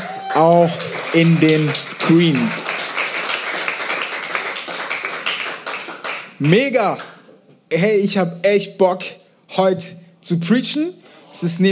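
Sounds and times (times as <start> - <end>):
speech: 0.0 - 2.9, 6.4 - 7.1, 7.7 - 11.7
audience applause for youth pastor: 0.0 - 6.5.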